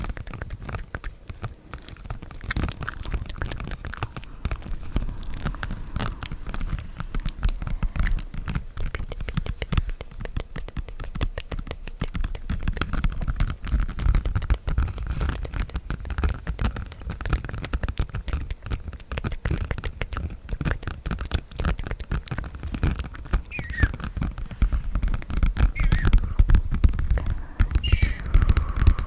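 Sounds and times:
soft low rumble: 0.0 - 10.9, 23.1 - 29.0
mouth sounds: 0.0 - 13.4, 16.8 - 24.3, 25.6 - 29.0
mic scratching: 0.0 - 29.0
tapping: 0.0 - 29.0.

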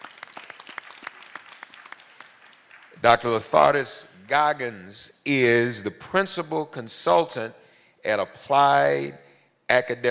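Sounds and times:
round of applause: 0.0 - 3.4
speech: 3.0 - 10.0.

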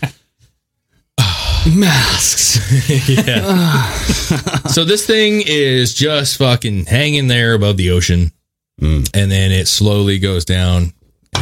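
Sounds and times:
voice imitating a startled gasp: 1.2 - 2.5, 3.3 - 4.3
speech: 1.6 - 11.4
laughter: 2.5 - 5.1.

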